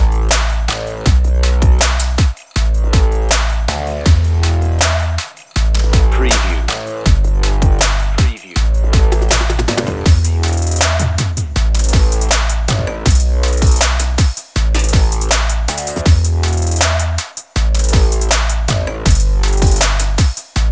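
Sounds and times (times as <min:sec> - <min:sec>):
bass: 0:00.0 - 0:20.7
drums: 0:00.0 - 0:20.7.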